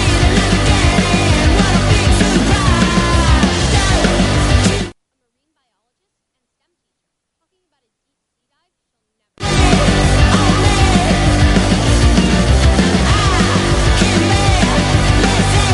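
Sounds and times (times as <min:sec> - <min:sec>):
garage psych rock: 0:00.0 - 0:05.0, 0:09.4 - 0:15.7.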